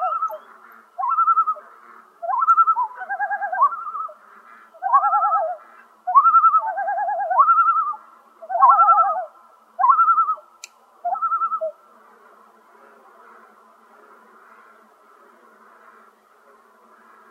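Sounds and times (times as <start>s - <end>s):
common loon calling tremolo phrases: 0.0s - 11.8s.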